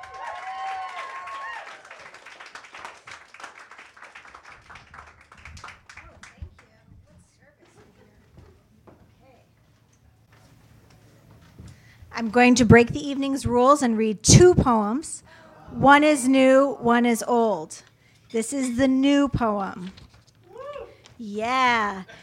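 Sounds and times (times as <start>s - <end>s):
audience applause at an open mic night: 0.0s - 6.4s
speech: 12.2s - 20.0s, 21.2s - 22.2s.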